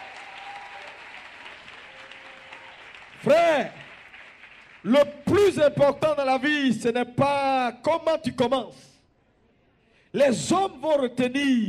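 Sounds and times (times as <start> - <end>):
church congregation applauding and cheering during a worship service: 0.0 - 6.3
speech: 3.2 - 3.8, 4.8 - 8.9, 10.1 - 11.6.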